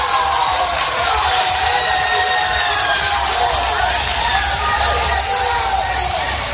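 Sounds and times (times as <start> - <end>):
family crowd cheering and shouting: 0.0 - 6.5
family crowd clapping: 0.0 - 6.5.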